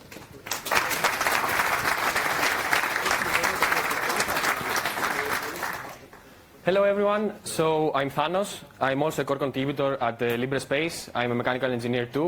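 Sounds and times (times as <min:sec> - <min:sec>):
audience applause at a conference welcoming a speaker: 0:00.0 - 0:06.2
speech: 0:06.6 - 0:12.2.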